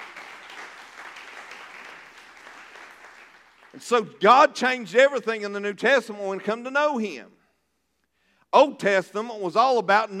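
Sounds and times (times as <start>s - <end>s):
audience clapping: 0.0s - 4.1s
speech: 3.8s - 7.4s, 8.5s - 10.1s.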